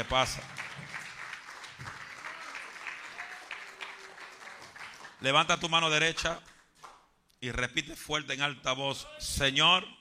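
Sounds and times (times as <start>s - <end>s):
speech: 0.0s - 0.6s, 5.2s - 6.5s, 7.4s - 9.9s
audience applause: 0.0s - 5.3s.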